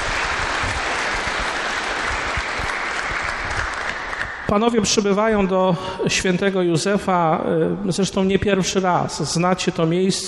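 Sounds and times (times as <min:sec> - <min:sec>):
audience applause: 0:00.0 - 0:04.5
speech: 0:04.5 - 0:10.2.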